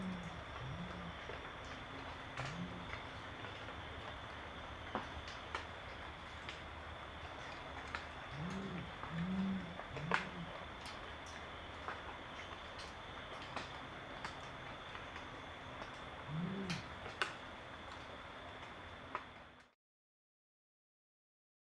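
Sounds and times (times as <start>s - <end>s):
Brown Fish Owl wailing call: 0.0s - 3.7s, 8.2s - 10.9s, 16.0s - 17.4s
Brown Fish Owl hooting duet: 0.0s - 19.3s.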